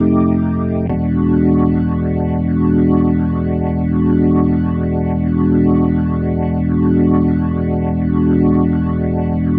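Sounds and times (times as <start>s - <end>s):
organ ending music: 0.0s - 9.5s.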